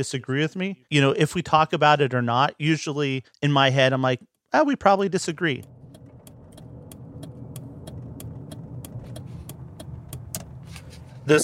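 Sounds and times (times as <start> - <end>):
speech: 0.0 - 5.7, 11.3 - 11.4
car engine and road rumble on a morning commute: 5.3 - 11.4
light ticking: 5.4 - 10.7.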